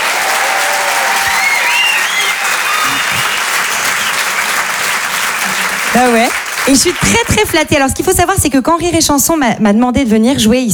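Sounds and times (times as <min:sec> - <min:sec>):
audience applauding: 0:00.0 - 0:07.9
speech: 0:06.0 - 0:10.7.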